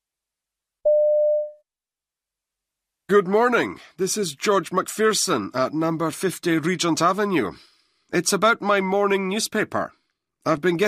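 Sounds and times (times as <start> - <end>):
telephone line beep as a man phones a newsagent's shop: 0.9 - 1.6
speech: 3.1 - 10.8.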